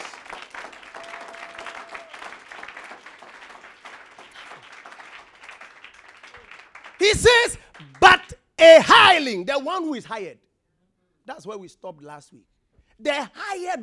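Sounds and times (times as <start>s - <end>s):
audience applause: 0.0s - 8.3s
speech: 7.0s - 10.4s, 11.3s - 13.8s.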